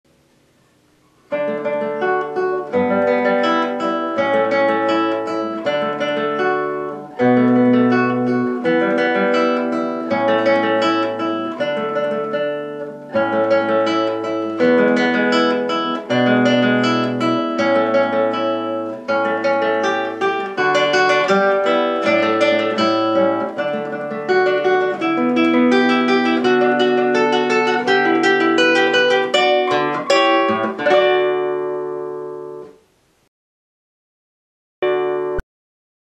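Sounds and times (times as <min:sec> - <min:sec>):
guitar etude: 0:00.1 - 0:32.9, 0:34.8 - 0:35.4.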